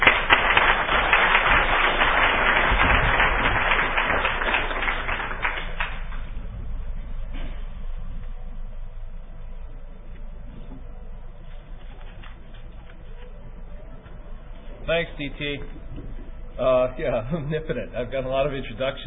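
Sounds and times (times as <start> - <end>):
audience applause at DEF CON greeting a speaker: 0.0 - 6.4
speech: 15.0 - 15.8, 16.6 - 19.0.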